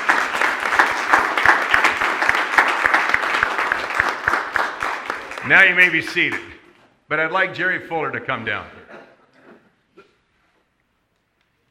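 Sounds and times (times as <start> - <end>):
audience applause: 0.0 - 6.5
speech: 5.5 - 6.5, 7.1 - 8.8.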